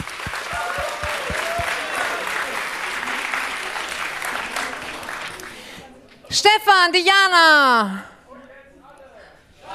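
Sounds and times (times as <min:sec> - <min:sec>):
audience applause: 0:00.0 - 0:05.8
speech: 0:06.3 - 0:08.1.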